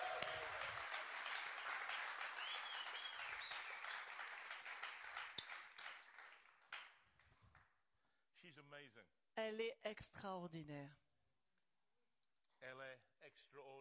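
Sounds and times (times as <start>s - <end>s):
audience applause: 0.0s - 6.9s
speech: 8.5s - 11.0s, 12.6s - 13.7s.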